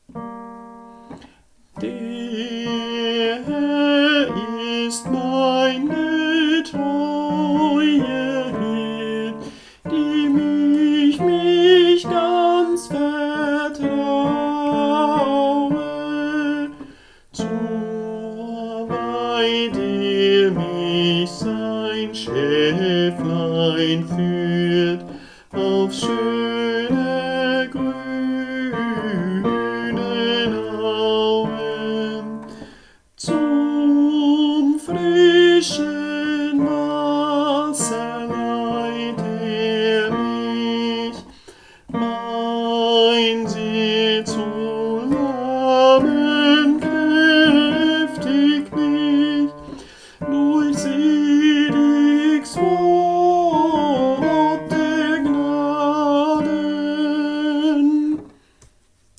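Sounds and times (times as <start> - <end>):
tenor singing: 0.1 - 58.4.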